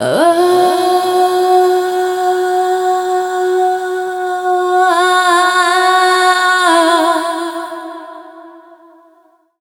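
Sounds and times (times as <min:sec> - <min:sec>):
woman singing dance vocals: 0:00.0 - 0:08.9.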